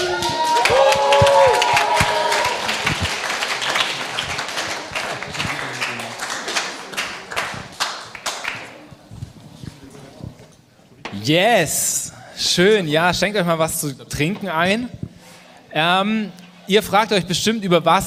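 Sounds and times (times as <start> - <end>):
cheering and whoops: 0.0 - 3.2
loud crowd applause: 0.0 - 8.9
speech: 11.3 - 15.0, 15.7 - 18.0.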